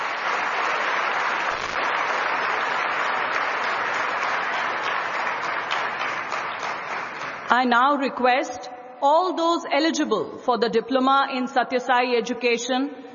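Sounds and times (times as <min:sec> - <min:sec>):
audience applause: 0:00.0 - 0:07.5
speech: 0:07.5 - 0:13.0.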